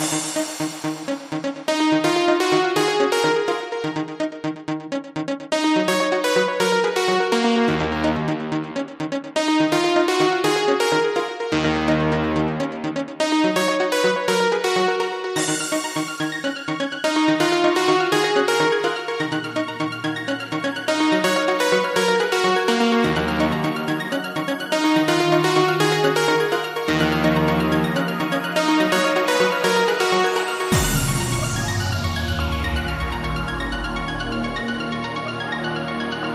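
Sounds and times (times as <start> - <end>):
arpeggio: 0.0 - 36.2.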